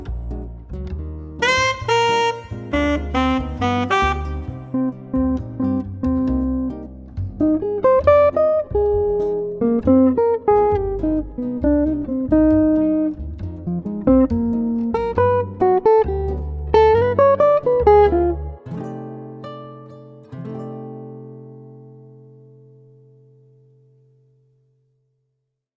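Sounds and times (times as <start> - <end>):
morning jazz music: 1.4 - 18.6.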